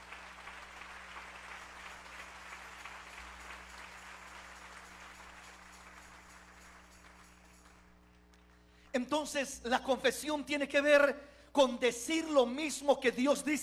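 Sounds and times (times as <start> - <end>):
audience applauding: 0.0 - 8.5
speech: 9.0 - 13.6.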